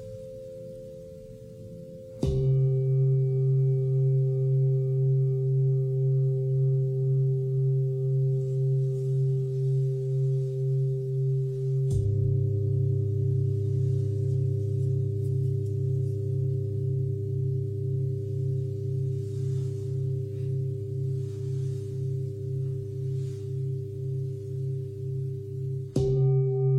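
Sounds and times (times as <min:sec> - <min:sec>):
singing bowl struck and ringing: 0:00.0 - 0:26.7.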